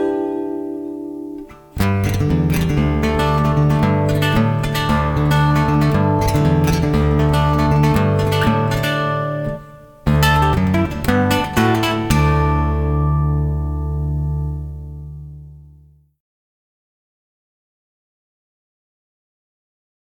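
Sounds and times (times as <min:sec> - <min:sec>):
acoustic African style guitar playing: 0:00.0 - 0:16.1.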